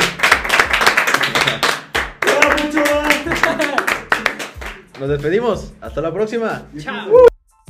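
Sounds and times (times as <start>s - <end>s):
crowd clapping: 0.0s - 5.2s
speech: 5.0s - 7.3s.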